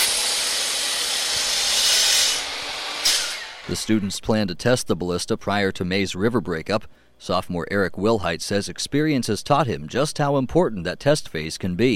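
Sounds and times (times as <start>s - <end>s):
woodcutting machine running with a hissing roar: 0.0s - 4.1s
speech: 3.7s - 11.9s.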